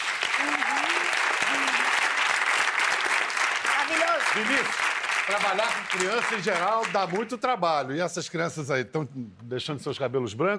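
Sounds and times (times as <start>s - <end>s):
crowd applause: 0.0s - 7.3s
faint cheers and vocal whoops: 0.2s - 2.1s
speech: 3.9s - 10.5s.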